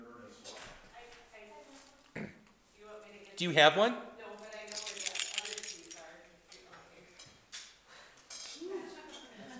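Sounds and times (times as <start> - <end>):
speech: 3.4 - 4.1
set of library keys jangling: 4.4 - 7.3.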